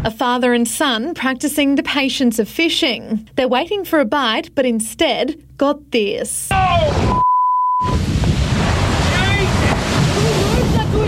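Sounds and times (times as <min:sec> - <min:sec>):
speech: 0:00.0 - 0:07.2
whale breaching, splashing whitewater: 0:07.8 - 0:11.0.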